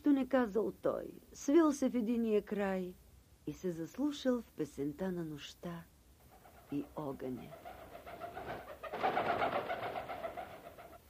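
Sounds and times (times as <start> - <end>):
speech: 0.2 - 5.9, 6.7 - 7.8
wild duck calling at night: 7.4 - 11.0.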